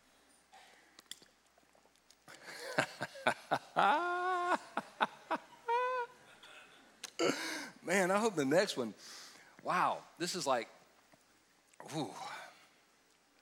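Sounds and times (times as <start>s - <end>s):
person drinking water: 0.5s - 2.7s
laughter: 2.4s - 6.7s
speech: 8.0s - 10.8s, 11.9s - 12.3s.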